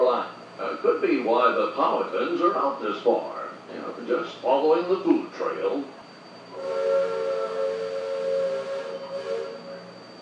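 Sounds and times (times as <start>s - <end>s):
speech: 0.8s - 6.0s
steamboat steam whistle blast: 6.5s - 10.2s.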